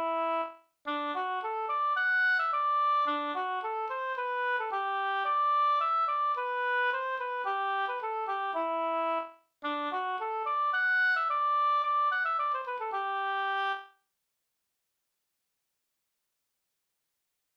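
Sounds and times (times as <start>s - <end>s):
polka music: 0.0s - 13.8s.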